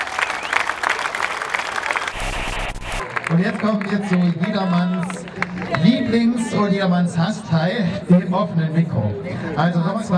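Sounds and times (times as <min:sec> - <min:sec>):
audience applause: 0:00.0 - 0:05.8
speech: 0:03.3 - 0:10.1.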